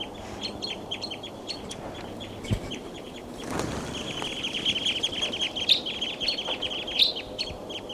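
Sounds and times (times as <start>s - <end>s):
flock of birds calling: 0.0s - 7.9s
low rumble: 0.0s - 7.9s.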